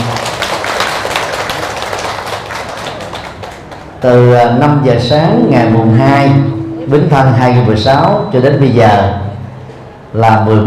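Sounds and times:
audience applause: 0.0 - 4.0
speech: 4.0 - 9.2, 10.1 - 10.6.

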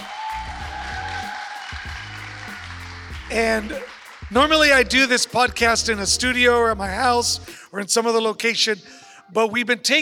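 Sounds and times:
audience clapping: 0.0 - 5.6
speech: 3.3 - 10.0.

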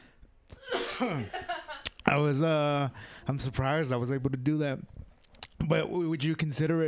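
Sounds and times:
person coughing after a smoke hit: 0.6 - 1.4
speech: 1.0 - 1.5, 2.1 - 5.0, 5.7 - 6.8.

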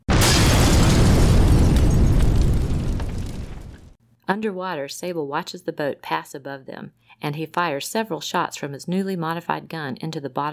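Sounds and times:
house exploding: 0.0 - 4.0
speech: 4.3 - 10.5.

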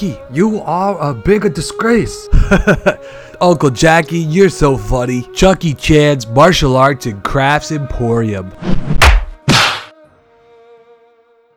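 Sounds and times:
speech: 0.0 - 8.9
laughter: 2.3 - 3.2
hand smacking a microphone: 8.6 - 9.9.

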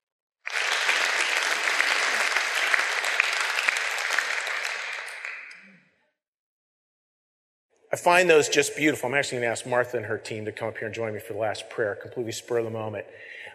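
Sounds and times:
crowd clapping: 0.4 - 5.8
speech: 8.0 - 13.5.

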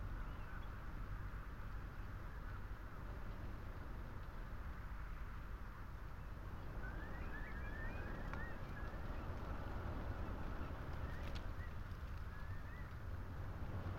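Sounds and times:
wind rushing through a lone tree and telegraph wires: 0.0 - 13.9
short thin whistling tones: 6.2 - 13.1.

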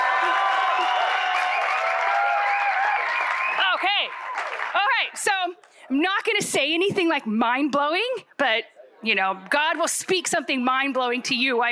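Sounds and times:
high-pitched whoops and shouts: 0.0 - 4.6
audience cheering and clapping: 0.0 - 5.2
speech: 5.0 - 11.7.

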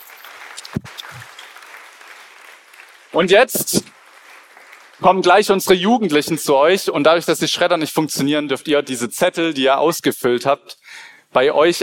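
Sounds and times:
audience applause: 0.0 - 5.6
speech: 3.2 - 4.0, 5.0 - 11.8.

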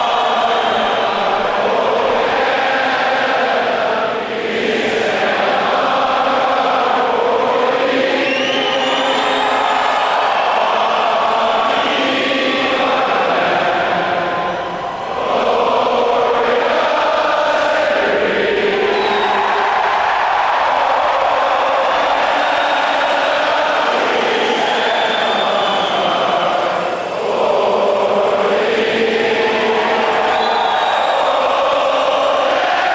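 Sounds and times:
crowd at a hockey game during anthem: 0.0 - 32.9.

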